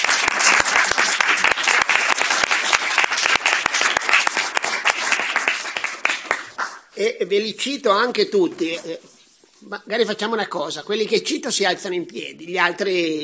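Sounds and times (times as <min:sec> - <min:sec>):
audience applause: 0:00.0 - 0:06.9
speech: 0:07.0 - 0:13.2.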